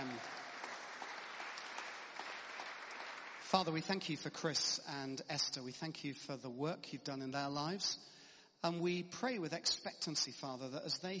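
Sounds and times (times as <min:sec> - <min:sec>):
church congregation clapping: 0:00.0 - 0:04.7
speech: 0:03.5 - 0:11.1.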